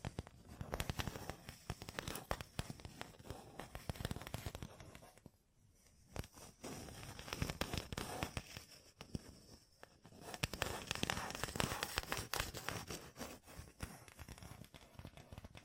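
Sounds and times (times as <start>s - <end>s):
gem-covered fingertips tapping and scratching: 0.0s - 15.6s.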